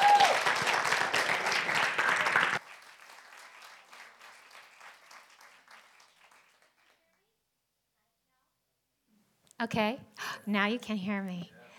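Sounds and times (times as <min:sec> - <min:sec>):
audience applause for a speaker coming on stage: 0:00.0 - 0:07.0
speech: 0:09.6 - 0:11.6.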